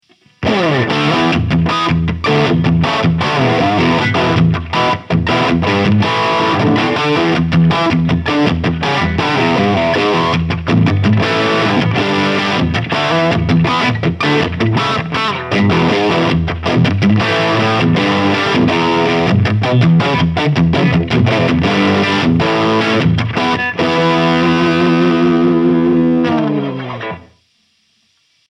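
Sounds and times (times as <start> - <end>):
humbucker guitar through Sound City Master One Hundred amplifier: 0.0 - 27.4.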